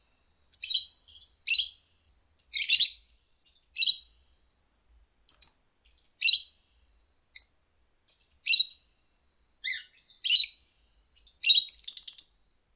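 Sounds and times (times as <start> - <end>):
lovebird calls: 0.6 - 1.8, 2.5 - 3.0, 3.8 - 4.1, 5.3 - 6.6, 8.4 - 8.8, 9.6 - 10.6, 11.2 - 12.4.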